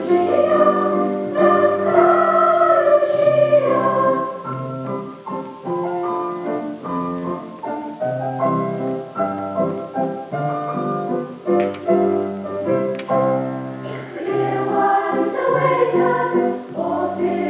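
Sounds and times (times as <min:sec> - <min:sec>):
madrigal choir singing: 0:00.0 - 0:04.6, 0:13.8 - 0:17.4
piano: 0:00.0 - 0:17.4.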